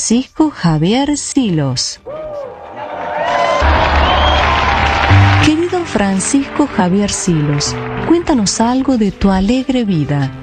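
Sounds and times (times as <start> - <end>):
speech: 0.1 - 2.6, 5.5 - 10.4
audience applause: 2.4 - 8.8.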